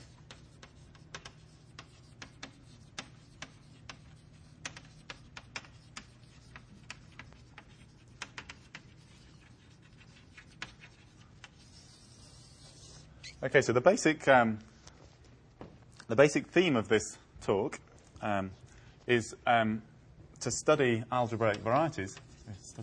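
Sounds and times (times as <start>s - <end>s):
low hum: 0.0s - 22.8s
taps and clicks of writing a talk title on a board: 0.2s - 8.9s
speech: 13.4s - 14.7s, 16.1s - 22.8s.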